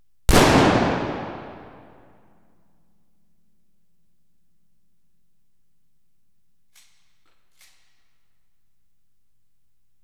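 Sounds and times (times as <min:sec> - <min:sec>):
cannon fire: 0:00.3 - 0:02.0
explosions: 0:00.3 - 0:02.0
gunfire: 0:00.3 - 0:02.0
pistol shots: 0:00.3 - 0:02.0.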